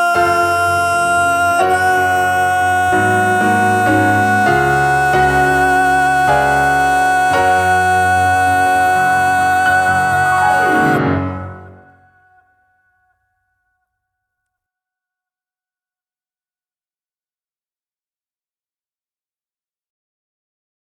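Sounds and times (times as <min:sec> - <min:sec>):
person singing: 0:00.0 - 0:12.5.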